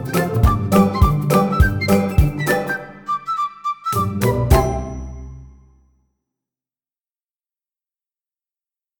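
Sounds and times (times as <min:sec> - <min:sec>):
instrumental music: 0:00.0 - 0:06.0.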